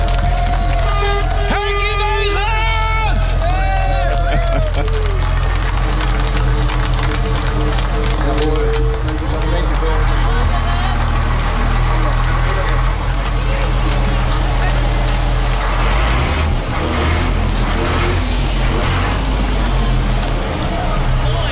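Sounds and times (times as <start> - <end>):
many people talking and calling out: 0.0 - 21.5
yellow truck engine idling: 0.0 - 21.5
laughter: 3.4 - 6.6, 8.3 - 13.0.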